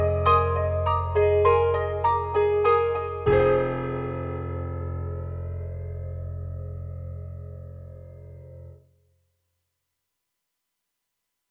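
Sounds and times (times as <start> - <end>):
piano from Korg EXB-PCM08 on a TRITON-Rack: 0.0 - 8.9.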